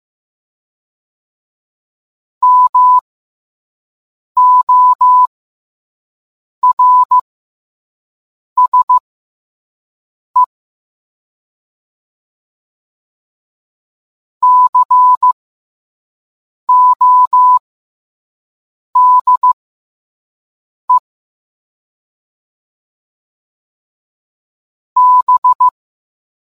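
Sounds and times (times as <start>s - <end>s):
morse code beeps: 2.4s - 3.0s, 4.4s - 5.3s, 6.6s - 7.2s, 8.6s - 9.0s, 14.4s - 15.4s, 16.7s - 17.6s, 19.0s - 19.6s, 25.0s - 25.8s.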